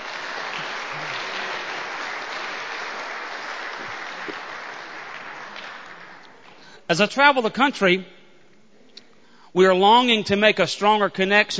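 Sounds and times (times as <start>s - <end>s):
audience applause welcoming a standing group: 0.0s - 6.6s
speech: 6.9s - 8.2s, 9.5s - 11.5s.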